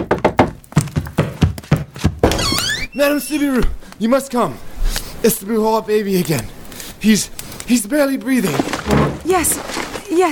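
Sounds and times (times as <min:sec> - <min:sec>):
loud knocking at a door: 0:00.0 - 0:02.4
speech: 0:03.0 - 0:10.3.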